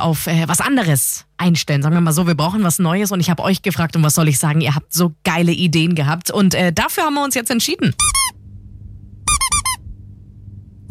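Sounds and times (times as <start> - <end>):
speech: 0.0 - 8.3
low hum: 0.0 - 10.8
rubber duck squeaking: 8.0 - 8.4, 9.3 - 9.8.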